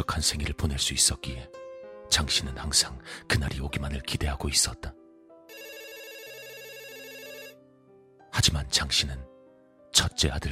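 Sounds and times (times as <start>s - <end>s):
speech: 0.0s - 5.0s, 8.4s - 9.3s, 9.9s - 10.5s
telephone ringing: 5.5s - 7.6s.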